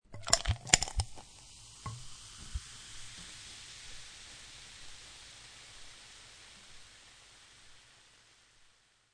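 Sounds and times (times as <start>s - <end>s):
soda water poured into a glass with ice cubes: 0.1s - 3.0s
carbonated drink fizzing in a glass with ice cubes: 0.1s - 6.8s.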